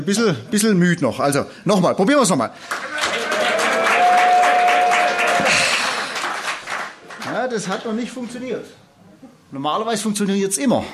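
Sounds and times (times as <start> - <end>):
speech: 0.0 - 3.0, 7.5 - 8.8, 9.5 - 10.9
crowd clapping and cheering: 2.6 - 7.5.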